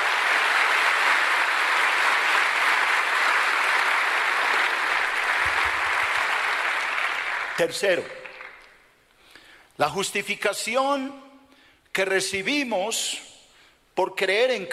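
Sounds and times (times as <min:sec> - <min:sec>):
audience applauding: 0:00.0 - 0:08.8
speech: 0:07.6 - 0:08.2, 0:09.8 - 0:11.2, 0:12.0 - 0:13.3, 0:14.0 - 0:14.7.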